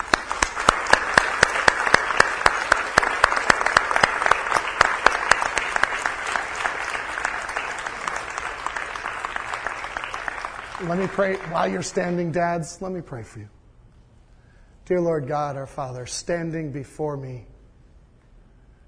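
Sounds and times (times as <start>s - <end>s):
audience applause for standing fathers: 0.0s - 12.2s
speech: 10.9s - 13.6s, 14.9s - 17.5s.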